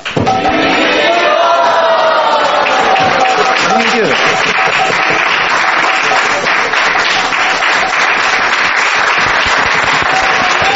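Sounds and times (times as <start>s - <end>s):
crowd cheering and shouting: 0.0s - 5.2s, 9.4s - 10.7s
laughter: 0.6s - 6.9s
clapping: 2.3s - 10.7s.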